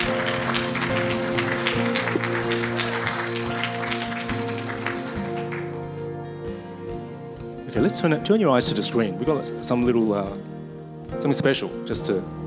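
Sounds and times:
audience applause: 0:00.0 - 0:06.0
speech: 0:07.8 - 0:10.6, 0:11.2 - 0:12.4.

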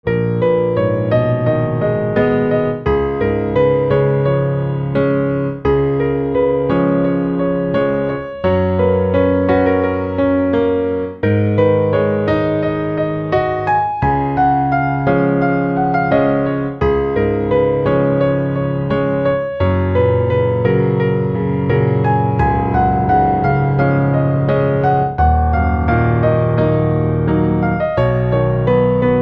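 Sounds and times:
piano: 0:00.0 - 0:29.2.

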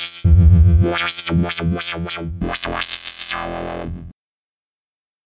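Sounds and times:
EML synth wobbler: 0:00.2 - 0:04.1.

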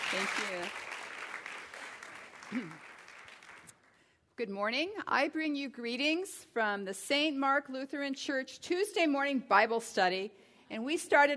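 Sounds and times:
church congregation applauding to welcome a guest speaker: 0:00.0 - 0:04.0
speech: 0:00.1 - 0:00.9, 0:02.5 - 0:02.9, 0:04.4 - 0:11.3.

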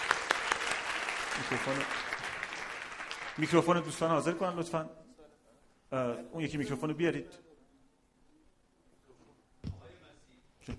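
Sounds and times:
crowd applause: 0:00.0 - 0:03.9
speech: 0:01.4 - 0:02.1, 0:03.4 - 0:05.0, 0:05.9 - 0:07.4.

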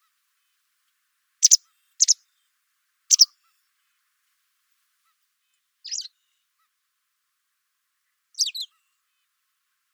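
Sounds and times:
white wagtail calls: 0:01.4 - 0:02.2.

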